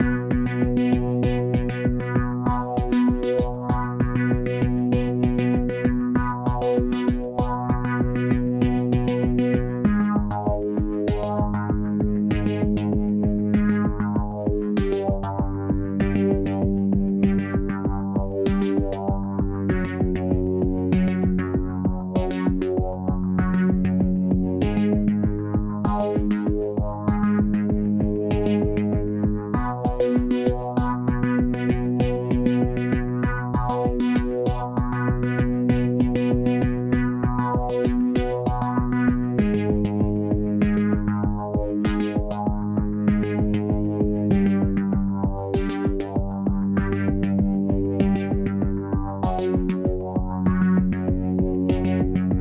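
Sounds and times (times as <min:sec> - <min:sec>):
instrumental music: 0:00.0 - 0:52.4.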